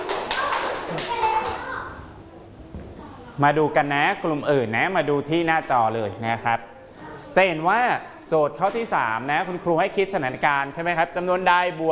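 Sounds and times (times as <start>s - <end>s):
classroom children clapping: 0.0s - 1.8s
children chattering faintly: 0.0s - 2.2s
speech: 3.4s - 6.7s, 7.4s - 11.9s.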